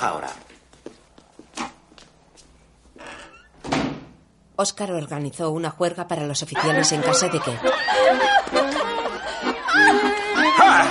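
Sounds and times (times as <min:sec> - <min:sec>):
speech: 0:00.0 - 0:00.5, 0:04.6 - 0:08.9
soft footsteps: 0:00.1 - 0:03.1
door creaking and closing as someone leaves: 0:03.0 - 0:04.2
laughter: 0:06.6 - 0:10.8.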